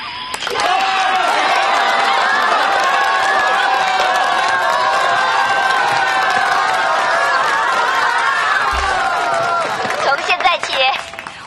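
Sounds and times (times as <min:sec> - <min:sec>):
audience applause: 0:00.3 - 0:11.4.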